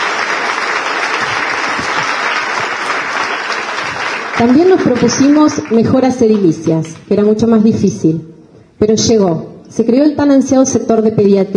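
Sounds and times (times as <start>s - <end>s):
audience applause: 0.0s - 6.6s
speech: 4.4s - 11.5s.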